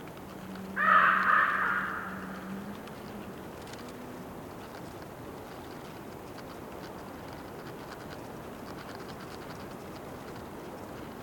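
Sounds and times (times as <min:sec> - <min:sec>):
bird croaking: 0:00.8 - 0:02.5.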